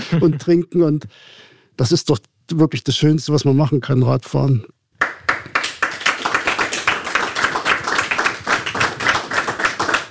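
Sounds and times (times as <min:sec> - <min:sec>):
speech: 0:00.1 - 0:05.1
applause: 0:05.0 - 0:10.0.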